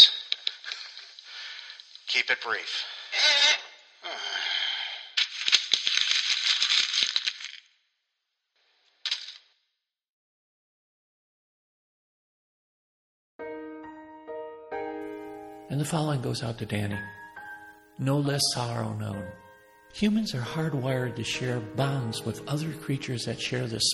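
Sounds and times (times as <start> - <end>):
paper being crumpled and wadded up: 0.0 - 2.1, 5.2 - 7.7, 9.0 - 9.5
speech: 2.1 - 4.3, 15.8 - 17.2, 18.0 - 23.9
steady musical tone: 13.6 - 23.9.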